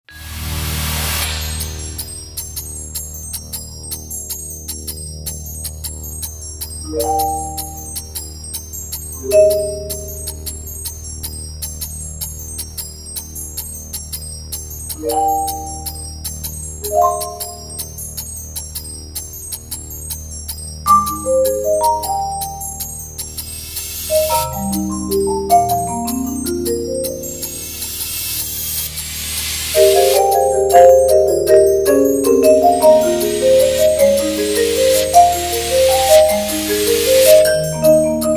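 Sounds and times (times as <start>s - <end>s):
marimba: 6.8s - 10.8s, 15.0s - 18.1s, 20.8s - 23.4s, 24.1s - 28.4s, 29.7s - 38.3s.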